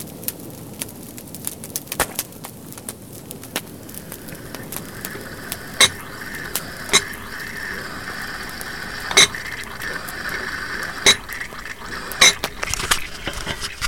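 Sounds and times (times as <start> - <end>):
water poured into a small jug of boiling water on a campfire: 3.8 - 13.8.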